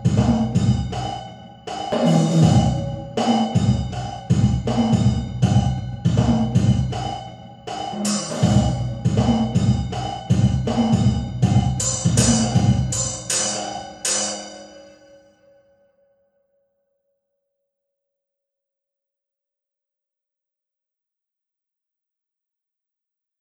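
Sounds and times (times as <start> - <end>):
hybrid drums in a trash room with metal grate: 0.0 - 14.8.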